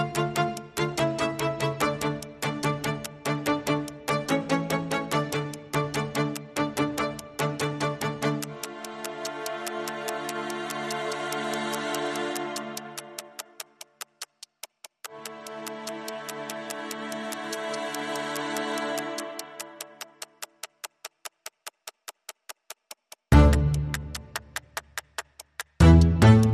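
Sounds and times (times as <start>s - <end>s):
strings: 0.0s - 13.8s, 15.0s - 20.2s, 23.3s - 24.8s, 25.8s - 26.5s
clock ticking: 0.0s - 26.5s.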